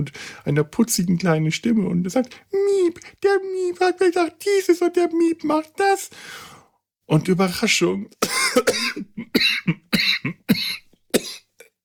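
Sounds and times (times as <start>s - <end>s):
speech: 0.0s - 9.6s
person coughing after choking on something: 8.2s - 11.7s.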